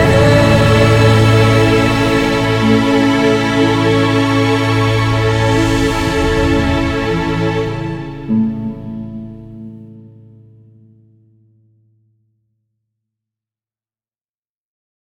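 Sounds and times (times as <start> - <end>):
epic intro music at 90 BPM in E sharp: 0.0 - 10.6.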